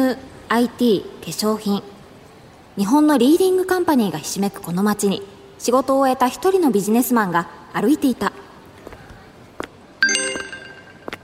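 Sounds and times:
speech: 0.0s - 1.9s, 2.8s - 8.4s
phone message notification chime: 10.0s - 11.2s.

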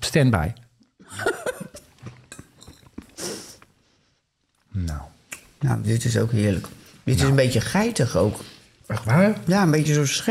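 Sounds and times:
speech: 0.1s - 1.3s, 5.6s - 10.2s
people chewing cheese with mouth clicks and smacks: 1.9s - 3.7s.

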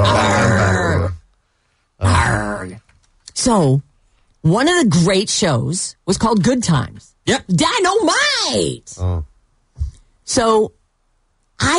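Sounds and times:
person imitating a growl: 0.0s - 1.2s, 2.0s - 2.7s, 9.0s - 9.3s
speech: 3.4s - 9.3s, 10.3s - 10.8s, 11.6s - 11.7s.

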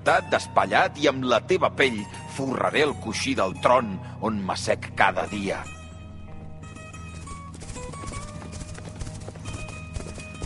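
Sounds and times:
speech: 0.0s - 5.8s
horses galloping, hooves clip-clopping: 6.3s - 10.4s.

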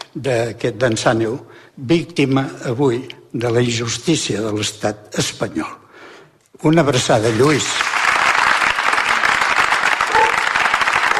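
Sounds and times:
speech: 0.2s - 5.8s, 6.6s - 7.8s
applause in the Plaça de l'Església: 7.2s - 11.1s.

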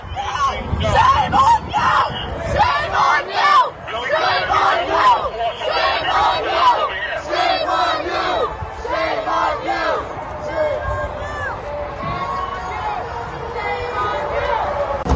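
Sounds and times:
pro-Palestinian protesters chanting slogans: 0.1s - 15.0s.

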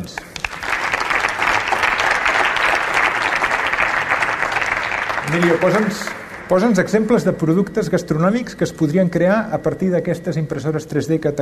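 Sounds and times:
speech: 0.0s - 0.3s, 5.3s - 11.4s
audience applause: 0.3s - 7.7s.

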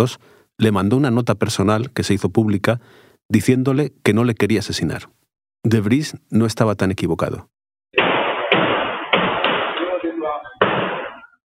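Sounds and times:
speech: 0.0s - 7.6s
gunshots from security camera footage: 8.0s - 11.3s.

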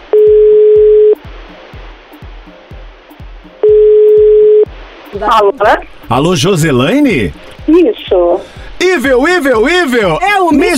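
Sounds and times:
telephone ringback tone while placing a call: 0.1s - 1.2s, 3.6s - 4.7s
speech: 5.2s - 10.7s.

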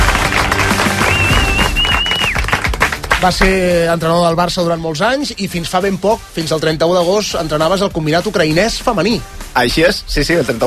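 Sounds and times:
applause: 0.0s - 3.7s
speech: 3.2s - 10.6s.

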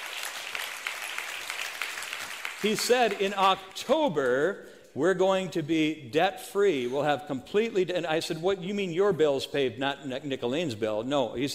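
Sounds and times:
congregation applause at a church service: 0.0s - 4.2s
speech: 2.6s - 11.5s.

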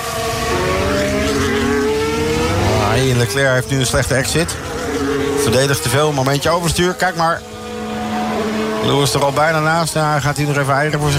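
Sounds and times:
Formula 1 race car engine whine at the 2023 US Grand Prix: 0.0s - 11.1s
speech: 3.0s - 7.5s, 8.8s - 11.1s.

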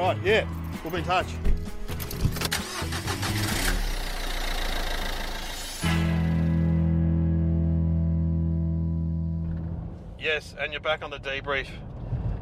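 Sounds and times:
speech: 0.1s - 1.5s, 10.2s - 11.9s
car engine on a drive back from Dean's Marsh: 0.4s - 12.3s.

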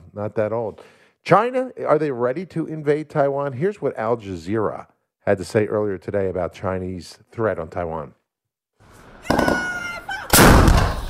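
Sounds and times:
speech: 0.2s - 8.2s
artillery shells fired by Taiwanese soldiers during a military exercise: 10.3s - 11.0s.

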